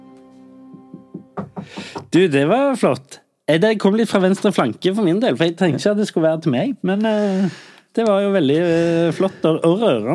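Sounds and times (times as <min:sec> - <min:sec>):
knocking on a table: 0:00.8 - 0:02.1
speech: 0:01.6 - 0:10.1.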